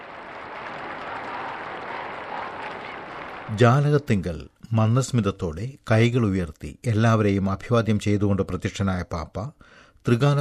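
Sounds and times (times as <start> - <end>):
large crowd in Rome applauding the Pope: 0.0 - 4.1
speech: 3.5 - 10.3.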